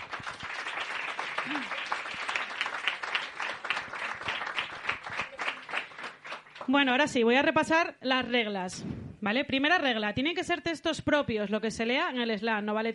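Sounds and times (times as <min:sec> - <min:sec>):
audience applause: 0:00.0 - 0:06.7
speech: 0:01.4 - 0:01.8, 0:06.7 - 0:12.9.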